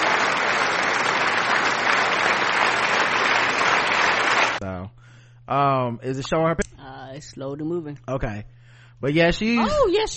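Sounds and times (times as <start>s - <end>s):
applause sound effect: 0.0s - 4.6s
speech: 5.5s - 10.1s.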